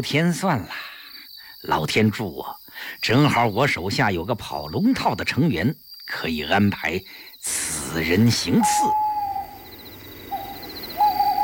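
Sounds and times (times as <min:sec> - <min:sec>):
speech: 0:00.0 - 0:00.9, 0:01.6 - 0:09.0
owl hooting outside a door: 0:08.4 - 0:11.4.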